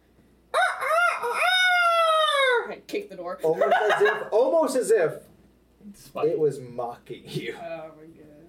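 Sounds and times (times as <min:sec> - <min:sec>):
rooster crowing: 0:00.5 - 0:02.7
speech: 0:02.9 - 0:08.3
laughter: 0:03.4 - 0:04.5.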